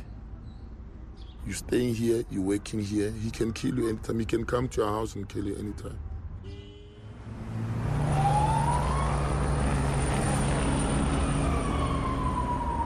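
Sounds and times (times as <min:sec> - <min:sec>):
speech: 0:01.5 - 0:06.6
police car siren speeding away: 0:07.4 - 0:12.8.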